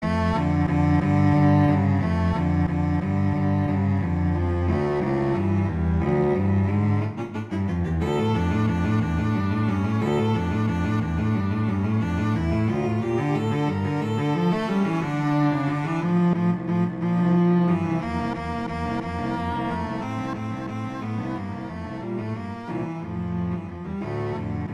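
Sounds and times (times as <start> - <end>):
andantino viola duet: 0.0 - 24.7.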